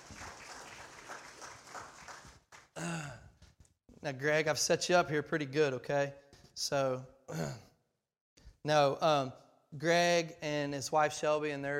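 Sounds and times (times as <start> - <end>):
audience applause: 0.0 - 2.9
speech: 4.0 - 7.7, 8.6 - 11.7.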